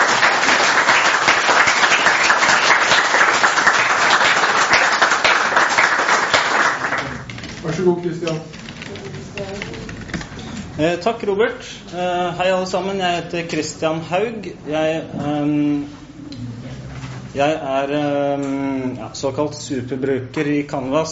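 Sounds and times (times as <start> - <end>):
audience applause: 0.0 - 7.8
speech: 7.8 - 8.6, 10.8 - 16.0, 17.4 - 21.1.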